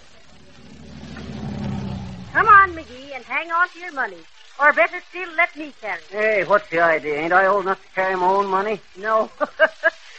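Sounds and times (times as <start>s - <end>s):
bus engine rumble pulling in: 0.0s - 3.2s
broad hiss of road or exhaust noise: 0.0s - 10.1s
speech: 2.8s - 9.9s.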